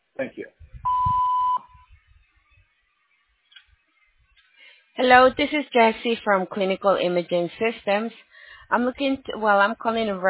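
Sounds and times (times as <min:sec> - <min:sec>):
speech: 0:00.2 - 0:00.6, 0:05.0 - 0:10.2
voicemail tone beep: 0:00.8 - 0:01.9.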